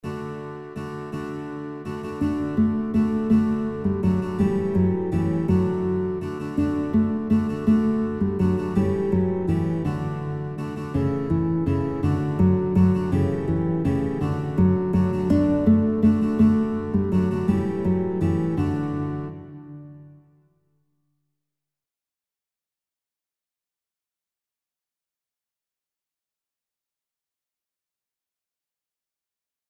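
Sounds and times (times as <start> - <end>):
guitar playing children's songs: 0.0 - 20.3.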